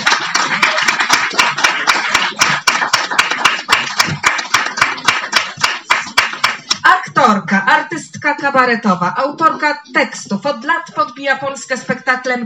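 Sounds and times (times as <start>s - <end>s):
audience applause: 0.0s - 6.7s
speech: 7.3s - 12.4s.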